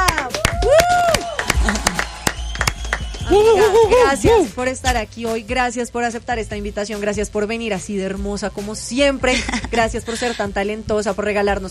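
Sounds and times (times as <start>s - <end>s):
audience applause: 0.1s - 3.8s
whistles and cheering: 0.4s - 3.8s
speech: 3.4s - 11.6s.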